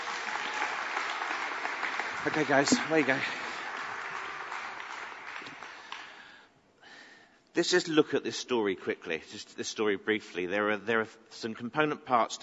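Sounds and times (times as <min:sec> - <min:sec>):
audience applauding: 0:00.0 - 0:06.3
speech: 0:02.2 - 0:03.4, 0:07.6 - 0:12.4.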